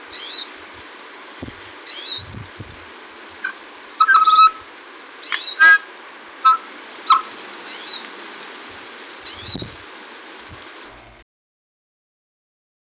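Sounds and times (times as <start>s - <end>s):
tui calling on Chatham: 0.0s - 0.6s, 1.2s - 10.8s.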